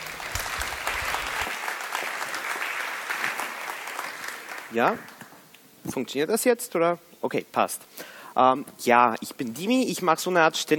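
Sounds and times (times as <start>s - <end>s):
audience applause: 0.0s - 5.2s
speech: 4.7s - 5.1s, 5.8s - 10.7s.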